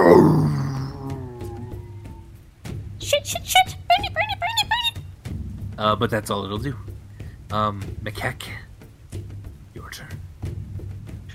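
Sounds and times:
hellhound howling: 0:00.0 - 0:02.4
speech: 0:03.2 - 0:04.1, 0:05.8 - 0:06.9, 0:07.5 - 0:08.6.

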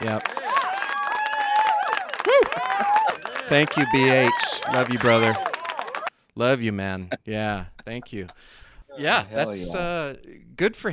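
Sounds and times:
crowd hollering and cheering: 0:00.0 - 0:06.1
speech: 0:00.1 - 0:00.4, 0:02.6 - 0:05.5, 0:06.4 - 0:10.9
laughter: 0:02.2 - 0:05.4, 0:06.7 - 0:10.0.

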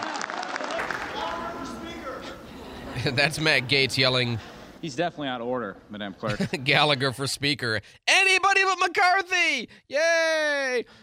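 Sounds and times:
applause after a speech line: 0:00.0 - 0:02.0
laughter: 0:01.2 - 0:04.5, 0:06.2 - 0:07.5
speech: 0:03.0 - 0:11.0.

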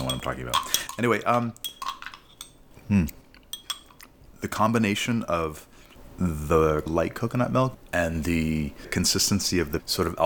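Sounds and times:
spoon tapping the edges of a glass of pea soup: 0:00.0 - 0:01.0, 0:01.6 - 0:02.6, 0:03.5 - 0:04.0
speech: 0:00.2 - 0:01.7, 0:02.9 - 0:03.2, 0:04.4 - 0:10.2.

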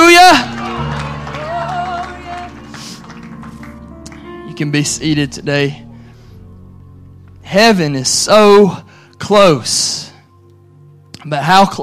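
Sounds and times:
audience hand clap of praise: 0:00.0 - 0:05.4
sustained organ-like musical tones: 0:00.0 - 0:11.8
speech: 0:04.6 - 0:05.8, 0:07.5 - 0:10.1, 0:11.2 - 0:11.8.

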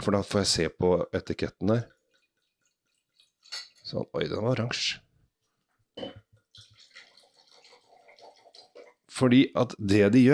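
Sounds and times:
speech: 0:00.0 - 0:02.0, 0:03.5 - 0:05.0, 0:06.0 - 0:06.2, 0:09.2 - 0:10.3
wine pouring into a glass: 0:06.0 - 0:09.1.

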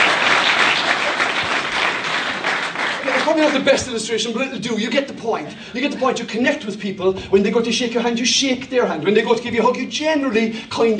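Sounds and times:
audience applause: 0:00.0 - 0:03.8
speech: 0:03.3 - 0:10.9.

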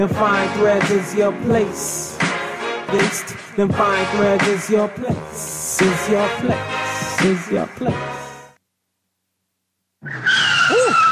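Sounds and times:
speech: 0:00.0 - 0:02.3, 0:02.9 - 0:08.2
car brakes squealing: 0:10.0 - 0:11.0.

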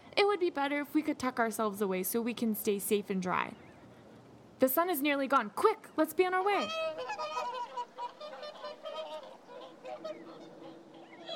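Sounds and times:
speech: 0:00.2 - 0:03.6, 0:04.6 - 0:07.3
swans honking: 0:06.4 - 0:11.3.

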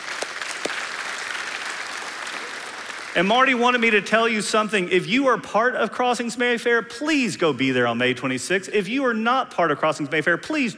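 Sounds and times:
crowd clapping: 0:00.0 - 0:04.0
speech: 0:03.1 - 0:10.7.

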